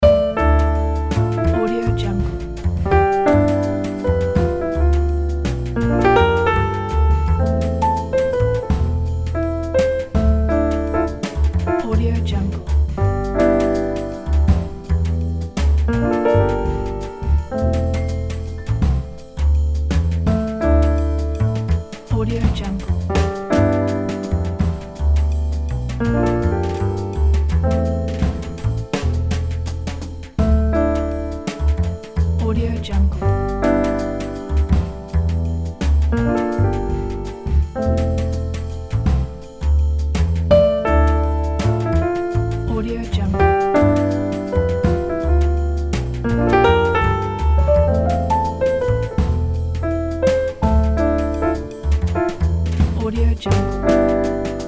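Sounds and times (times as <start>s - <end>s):
jazz piano: 0.0s - 54.6s.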